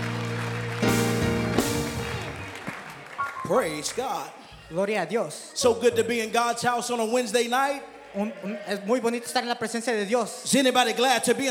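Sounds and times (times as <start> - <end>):
audience clapping hands: 0.0 - 4.4
speech: 3.5 - 11.4.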